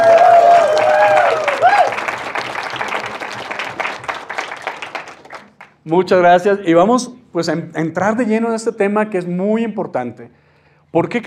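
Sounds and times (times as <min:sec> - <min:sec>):
audience applause: 0:00.0 - 0:05.8
speech: 0:05.9 - 0:11.2.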